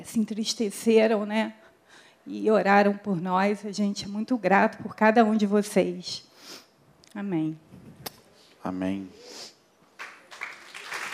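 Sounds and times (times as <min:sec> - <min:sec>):
speech: 0:00.0 - 0:08.0, 0:08.6 - 0:09.5
crowd applauding in a large room: 0:10.0 - 0:11.1.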